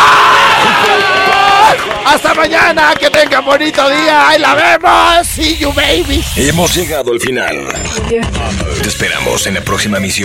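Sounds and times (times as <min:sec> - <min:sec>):
crowd cheering with whoops and shouting voices: 0:00.0 - 0:02.1
crowd applause: 0:00.0 - 0:04.6
speech: 0:02.4 - 0:10.2.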